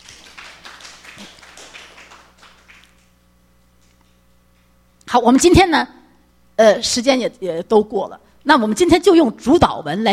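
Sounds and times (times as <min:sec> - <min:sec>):
audience applauding: 0:00.0 - 0:03.1
speech: 0:05.1 - 0:06.0, 0:06.6 - 0:10.1.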